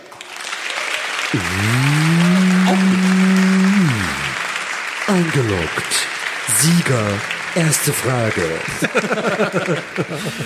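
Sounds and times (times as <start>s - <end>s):
crowd clapping: 0.0s - 10.4s
speech: 1.3s - 2.1s, 5.1s - 10.4s
laughter: 1.4s - 4.5s, 8.5s - 10.4s
low mooing tone: 1.4s - 4.5s.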